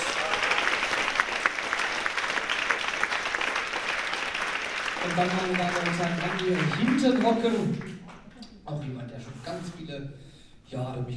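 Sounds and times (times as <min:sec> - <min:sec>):
audience applauding: 0:00.0 - 0:08.2
speech: 0:05.0 - 0:07.9, 0:09.9 - 0:11.1.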